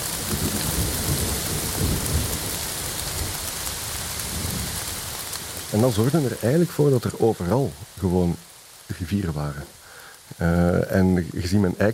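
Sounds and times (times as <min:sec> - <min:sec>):
deep rumbles of thunder: 0:00.0 - 0:08.0
heavy rain pouring: 0:00.0 - 0:11.9
speech: 0:05.7 - 0:11.9.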